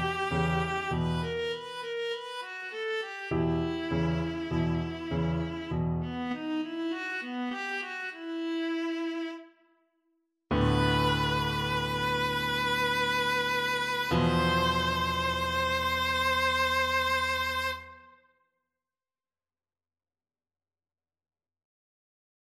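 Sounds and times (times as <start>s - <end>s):
boogie viola: 0.0s - 9.2s, 10.5s - 18.1s.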